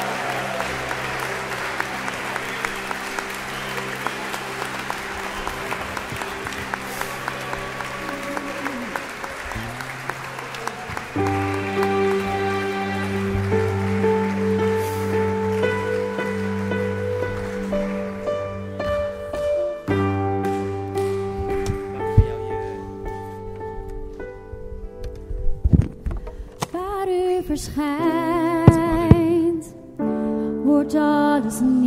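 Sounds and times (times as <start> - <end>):
audience clapping and cheering: 0.0 - 23.3
sustained keyboard chords: 0.0 - 31.8.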